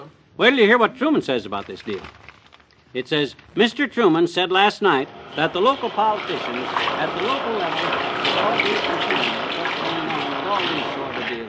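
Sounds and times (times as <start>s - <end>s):
speech: 0.4s - 2.2s, 2.9s - 9.4s
washing machine churning water: 5.0s - 11.4s.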